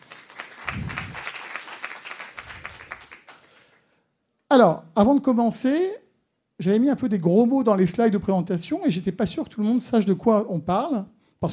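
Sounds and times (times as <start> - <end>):
audience applause: 0.0 - 3.7
speech: 4.5 - 6.0, 6.6 - 11.5.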